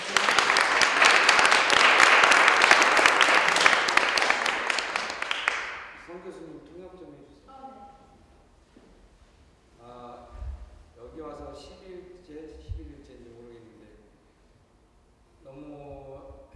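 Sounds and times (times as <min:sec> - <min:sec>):
crowd applauding: 0:00.0 - 0:06.1.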